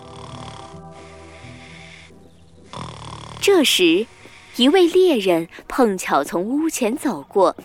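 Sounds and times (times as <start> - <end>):
loud snoring: 0.0 - 4.7
speech: 3.4 - 7.6.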